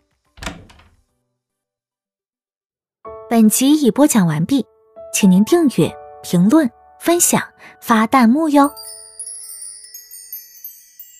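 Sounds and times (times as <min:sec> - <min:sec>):
wooden door of private room No. 5 opening with a thump and rattle: 0:00.4 - 0:01.1
speech: 0:03.4 - 0:09.0.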